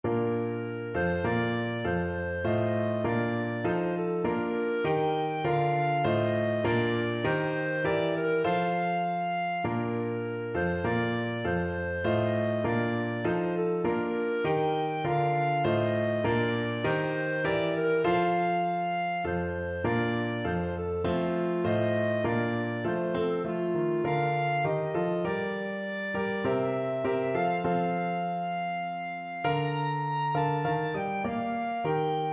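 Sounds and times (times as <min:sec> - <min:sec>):
clarinet: 0:00.0 - 0:32.3.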